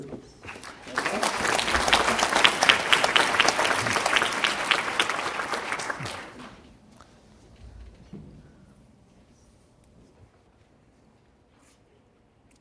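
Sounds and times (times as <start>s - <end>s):
crowd applause: 0.4s - 6.7s.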